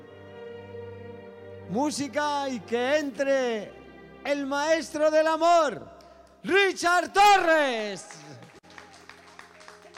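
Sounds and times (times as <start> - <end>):
speech: 1.7 - 8.2
audience applause: 8.0 - 9.9.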